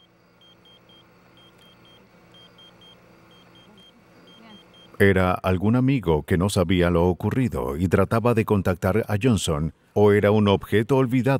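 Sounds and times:
pager beeping beneath a grave in the desert: 0:00.0 - 0:05.0
speech: 0:05.0 - 0:11.3.

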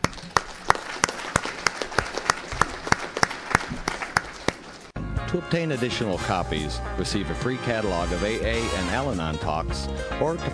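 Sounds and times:
audience applause: 0:00.0 - 0:04.9
speech: 0:05.3 - 0:10.5.

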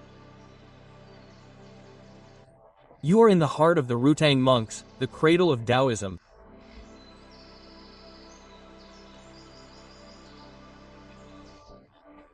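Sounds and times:
birdsong: 0:00.0 - 0:02.4, 0:06.7 - 0:11.7
speech: 0:03.0 - 0:06.2.

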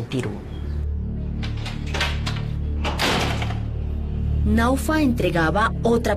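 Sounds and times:
speech: 0:00.1 - 0:00.5, 0:04.4 - 0:06.1
metal gate being opened noisily: 0:01.4 - 0:03.7.

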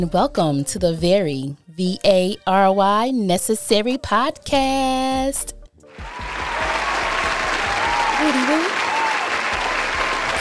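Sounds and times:
speech: 0:00.0 - 0:05.6, 0:08.2 - 0:08.7
audience hand claps: 0:06.0 - 0:10.3.

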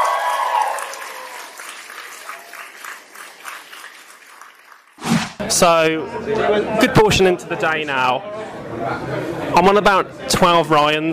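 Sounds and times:
audience applause: 0:00.0 - 0:05.0
speech: 0:05.5 - 0:11.1.

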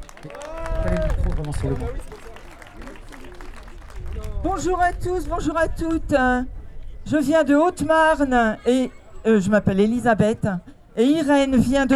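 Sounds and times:
audience applause: 0:00.0 - 0:04.6
speech: 0:00.2 - 0:00.4, 0:01.4 - 0:02.2, 0:04.4 - 0:11.9.

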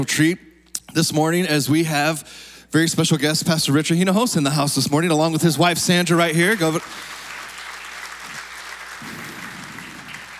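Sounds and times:
speech: 0:00.0 - 0:07.2
audience clapping for guest: 0:06.0 - 0:10.3.

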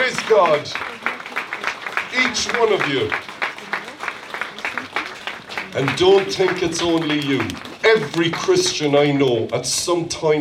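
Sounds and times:
audience applause: 0:00.0 - 0:09.7
speech: 0:00.3 - 0:01.1, 0:02.1 - 0:03.3, 0:05.7 - 0:10.4.

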